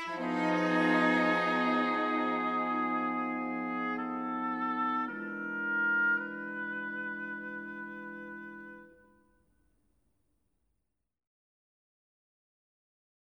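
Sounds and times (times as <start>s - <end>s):
instrumental music: 0.0s - 9.3s.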